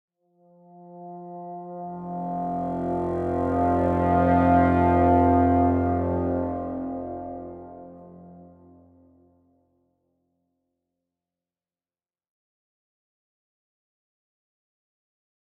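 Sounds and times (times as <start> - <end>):
ambient music: 0.3 - 9.7.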